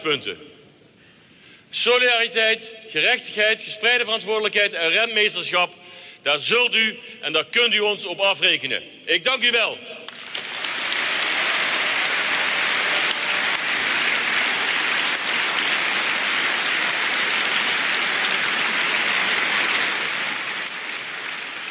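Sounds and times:
speech: 0.0 - 0.6, 1.7 - 10.0
audience booing: 10.6 - 20.6.

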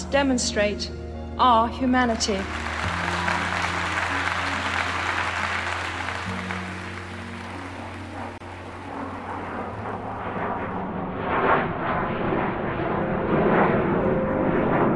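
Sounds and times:
speech: 0.1 - 2.7
standing ovation applause after a speech: 2.1 - 8.9
low hum: 6.1 - 14.9.

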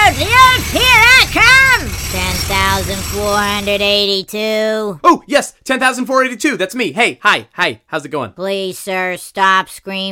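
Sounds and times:
voice imitating an old-fashioned tunneling drill starting up: 0.0 - 4.7
speech: 3.2 - 10.0.

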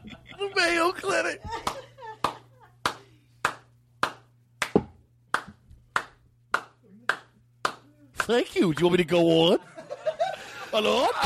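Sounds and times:
laughter: 0.0 - 3.2, 9.6 - 11.2
speech: 0.4 - 1.8, 8.3 - 9.7, 10.7 - 11.2
single person clapping alone after a joke: 1.6 - 8.4.

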